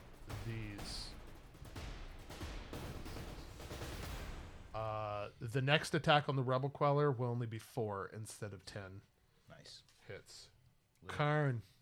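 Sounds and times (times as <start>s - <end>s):
railgun firing in a video game battle: 0.0s - 4.8s
speech: 0.5s - 1.0s, 4.8s - 11.7s.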